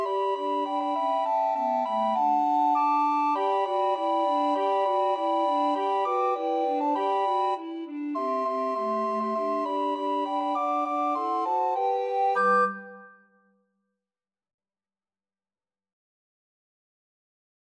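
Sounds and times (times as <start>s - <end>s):
recorder quartet: 0.0s - 13.1s.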